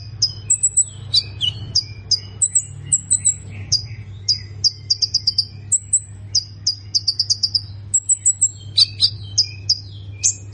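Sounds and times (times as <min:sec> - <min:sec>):
plain prinia song high chirping: 0:00.0 - 0:10.5.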